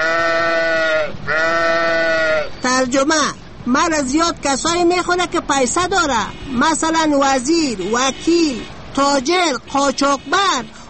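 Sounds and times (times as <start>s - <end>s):
sheep bleating: 0.0s - 2.5s
speech: 2.8s - 10.8s.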